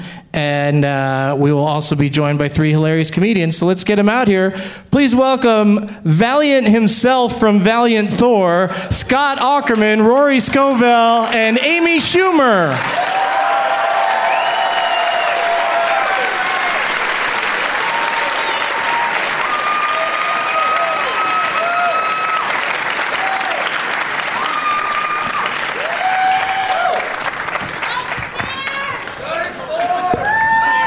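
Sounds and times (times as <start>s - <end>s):
speech: 0.4s - 13.2s
crowd applauding: 9.6s - 30.8s
whoops and shouted yells: 12.9s - 16.9s, 17.7s - 22.5s, 24.3s - 27.1s, 29.8s - 30.8s.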